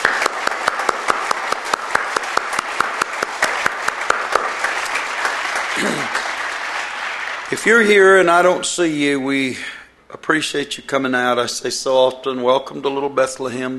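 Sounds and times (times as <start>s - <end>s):
sharp individual claps: 0.0s - 7.7s
audience applause at a church service: 0.0s - 8.5s
speech: 7.5s - 9.7s, 10.3s - 13.7s.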